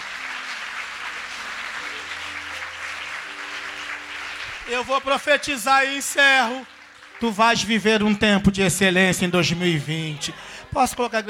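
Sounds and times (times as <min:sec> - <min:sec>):
audience applauding loudly: 0:00.0 - 0:08.8
speech: 0:04.7 - 0:11.2.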